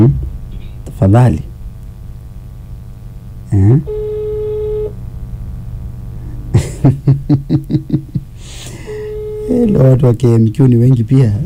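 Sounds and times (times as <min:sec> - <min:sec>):
speech: 0:01.0 - 0:01.5, 0:03.5 - 0:04.0, 0:06.9 - 0:08.2, 0:09.5 - 0:11.4
voiced bursts: 0:03.4 - 0:05.0, 0:08.3 - 0:10.0
ringback tone on an outgoing phone call: 0:03.9 - 0:04.9, 0:08.8 - 0:09.9
laughter: 0:06.5 - 0:08.9.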